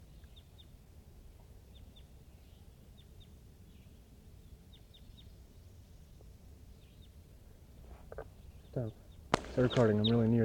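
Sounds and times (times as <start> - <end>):
wild crossbill calling from the hilltop: 8.6 - 10.4
speech: 8.8 - 9.0, 9.6 - 10.4.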